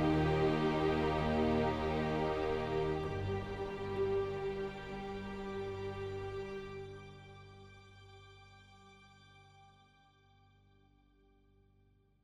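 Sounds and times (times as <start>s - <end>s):
atmospheric pads: 0.0s - 7.2s
string theme: 0.0s - 11.0s.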